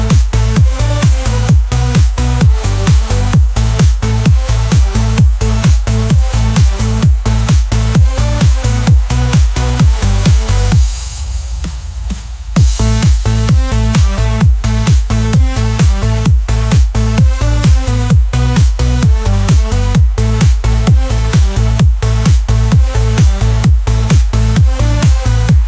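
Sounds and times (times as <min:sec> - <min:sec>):
electric surge bass: 0:00.0 - 0:25.6.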